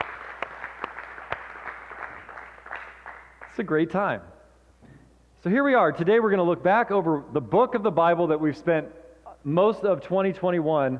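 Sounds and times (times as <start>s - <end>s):
audience applause: 0.0s - 3.5s
speech: 3.6s - 4.4s, 5.4s - 10.9s.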